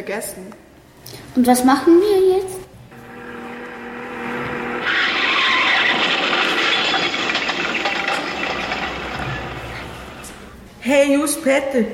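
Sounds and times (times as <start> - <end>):
speech: 0.0 - 2.7, 10.8 - 11.9
tires skidding as a car is forced off the road: 2.9 - 10.6.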